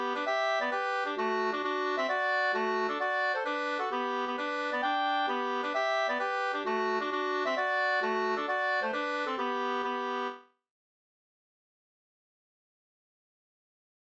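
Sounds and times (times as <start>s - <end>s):
three-step polska folk dance music: 0.0s - 10.4s.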